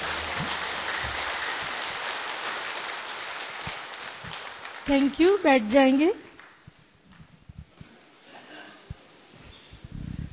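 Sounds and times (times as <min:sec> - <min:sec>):
audience applause: 0:00.0 - 0:05.7
speech: 0:04.9 - 0:06.2.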